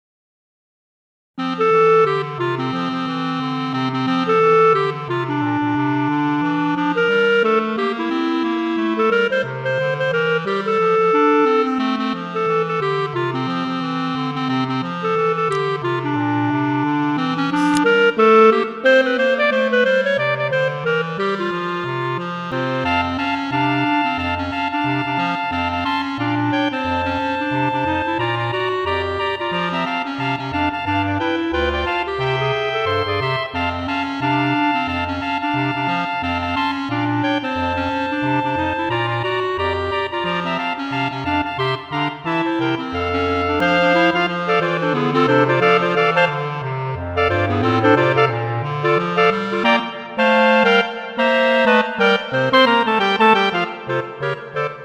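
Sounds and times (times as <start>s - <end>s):
jazz Christmas song: 1.4s - 54.8s.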